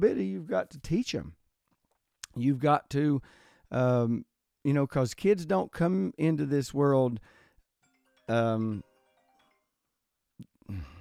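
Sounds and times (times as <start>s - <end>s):
speech: 0.0s - 1.4s, 2.4s - 7.4s, 8.3s - 8.9s, 10.7s - 10.9s
mobile phone ringing: 7.8s - 10.2s.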